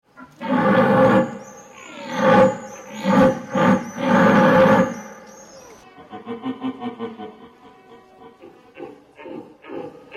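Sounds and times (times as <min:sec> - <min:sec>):
deer bellowing: 0:00.2 - 0:05.8.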